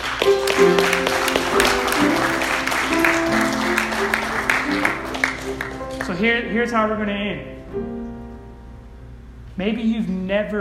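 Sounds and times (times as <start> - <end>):
crowd clapping: 0.0 - 6.6
speech: 0.6 - 0.9, 6.2 - 8.0, 9.6 - 10.6.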